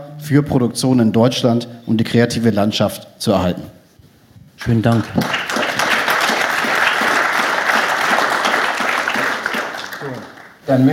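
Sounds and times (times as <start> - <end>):
speech: 0.2 - 3.8, 4.6 - 5.4, 10.7 - 10.9
audience applause: 4.6 - 10.6.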